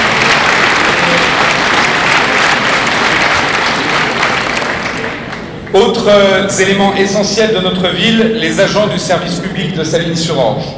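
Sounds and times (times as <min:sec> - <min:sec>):
audience applause: 0:00.0 - 0:05.6
speech: 0:05.8 - 0:10.7.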